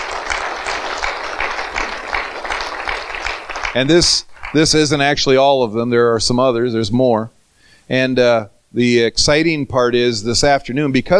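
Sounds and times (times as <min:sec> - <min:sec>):
audience applause: 0:00.0 - 0:04.9
speech: 0:03.7 - 0:11.1.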